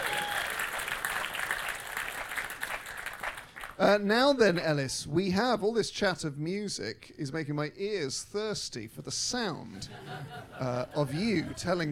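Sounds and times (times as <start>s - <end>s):
audience applause: 0.0s - 3.8s
speech: 3.8s - 11.8s
laughter: 9.7s - 11.8s.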